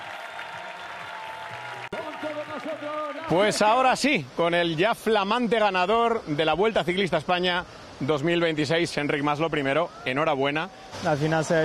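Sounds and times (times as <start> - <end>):
crowd applause at race finish: 0.0 - 3.8
speech: 1.9 - 11.6.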